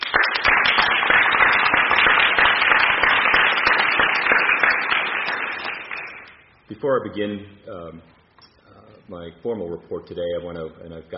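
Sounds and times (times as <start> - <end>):
audience applause: 0.0 - 6.3
speech: 6.8 - 8.2, 9.1 - 11.1.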